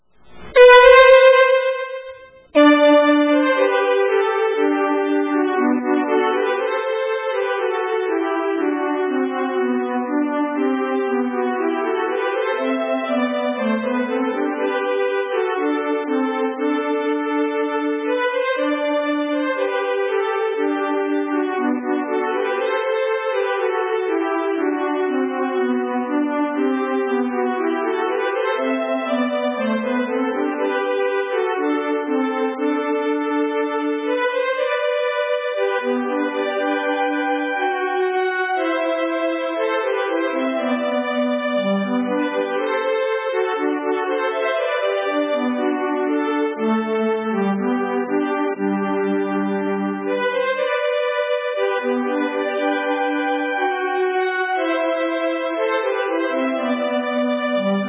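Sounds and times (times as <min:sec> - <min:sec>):
wedding march music: 0:00.3 - 0:57.8.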